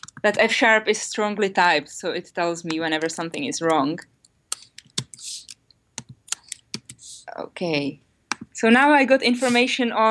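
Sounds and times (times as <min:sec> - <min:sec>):
typing on a computer keyboard while writing code: 0:00.0 - 0:00.5, 0:02.6 - 0:07.1
speech: 0:00.2 - 0:04.1, 0:07.4 - 0:08.0, 0:08.6 - 0:10.1.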